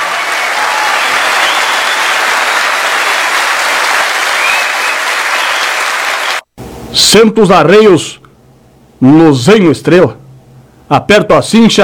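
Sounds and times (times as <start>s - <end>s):
audience applause: 0.0s - 6.5s
speech: 7.0s - 8.2s, 9.0s - 10.2s, 10.9s - 11.8s.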